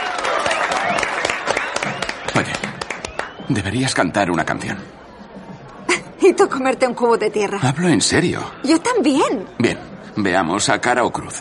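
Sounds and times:
woman clapping hands: 0:00.0 - 0:03.5
murmur of voices: 0:01.7 - 0:11.3
speech: 0:02.4 - 0:02.7, 0:03.5 - 0:05.0, 0:06.2 - 0:11.3.

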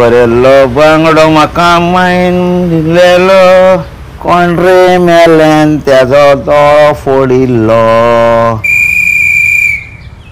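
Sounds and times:
speech: 0:00.0 - 0:08.7
garbage collector's whistle: 0:08.6 - 0:10.1.

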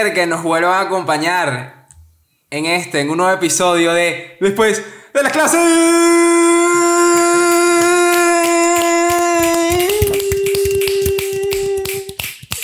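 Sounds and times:
speech: 0:00.0 - 0:01.8, 0:02.5 - 0:06.6
hosts clapping hands: 0:06.9 - 0:12.6.

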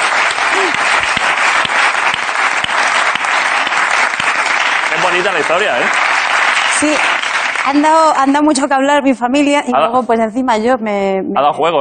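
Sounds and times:
audience applause: 0:00.0 - 0:08.4
speech: 0:05.2 - 0:06.0, 0:06.8 - 0:11.7.

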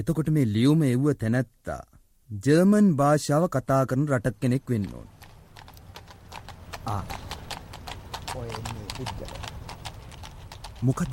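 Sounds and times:
speech: 0:00.0 - 0:05.2, 0:06.8 - 0:07.2, 0:08.4 - 0:09.5, 0:10.8 - 0:11.1
horse hooves clip-clopping as a horse-drawn carriage arrives: 0:04.4 - 0:11.1.

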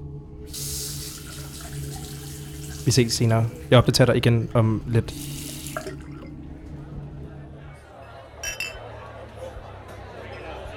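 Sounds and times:
running tap water into a sink while washing fingers: 0:00.5 - 0:06.5
speech: 0:02.8 - 0:05.4.

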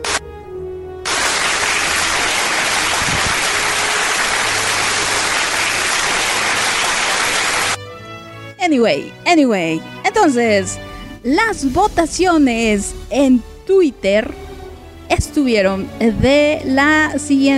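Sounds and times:
crowd applause: 0:01.1 - 0:07.8
low musical tone: 0:08.5 - 0:17.5
speech: 0:08.7 - 0:14.4, 0:15.1 - 0:17.5.

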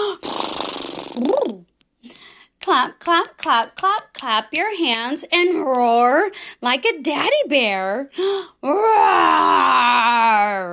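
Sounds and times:
raspberry blown with the lips: 0:00.0 - 0:01.7
speech: 0:02.8 - 0:10.7.

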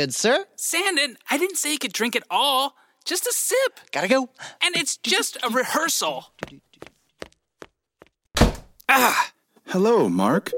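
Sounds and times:
speech: 0:00.0 - 0:06.9, 0:08.9 - 0:10.5
door shut forcefully: 0:08.4 - 0:08.8.

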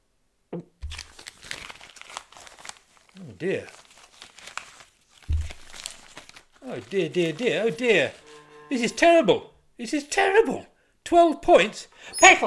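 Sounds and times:
government department envelopes being torn open: 0:00.8 - 0:08.5
speech: 0:03.2 - 0:03.8, 0:06.6 - 0:12.4.

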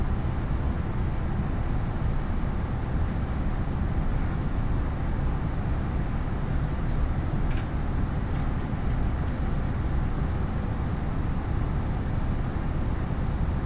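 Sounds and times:
313 series train interior rumble on the Iida Line: 0:00.0 - 0:13.6.

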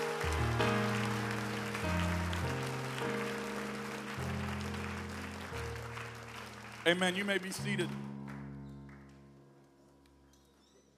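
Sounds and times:
audience clapping hands: 0:00.0 - 0:09.5
speech: 0:06.9 - 0:08.1.

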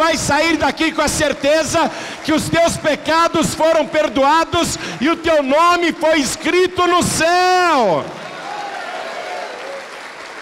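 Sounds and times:
speech: 0:00.1 - 0:08.2
church audience applause: 0:00.8 - 0:03.8, 0:08.0 - 0:10.4.

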